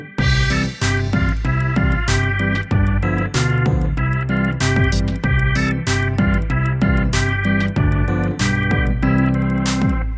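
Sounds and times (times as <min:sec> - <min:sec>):
karaoke backing track: 0:00.2 - 0:10.1.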